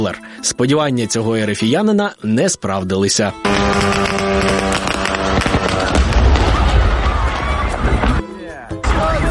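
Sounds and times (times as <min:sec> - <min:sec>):
speech: 0:00.0 - 0:06.1
explosion from drone strike on warehouse: 0:03.5 - 0:08.2.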